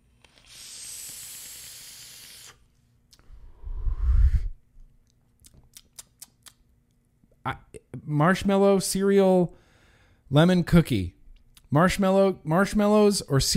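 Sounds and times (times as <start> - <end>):
breathy rumbling exhale: 0.3 - 2.6, 3.2 - 4.6, 9.6 - 10.2
vape draw from an RDA atomizer: 0.3 - 2.7
sharp little clicks: 5.4 - 6.6
speech: 7.4 - 9.6, 10.3 - 13.5.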